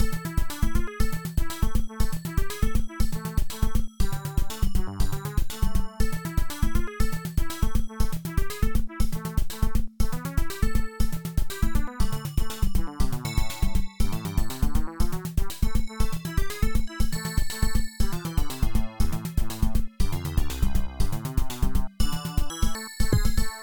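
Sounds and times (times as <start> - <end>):
rhythm: 0.0 - 22.4, 23.1 - 23.6.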